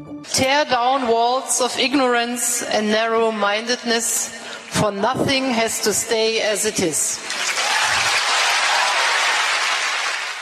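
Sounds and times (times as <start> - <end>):
speech: 0.4 - 7.6
young students applauding in Harvard: 7.3 - 10.4.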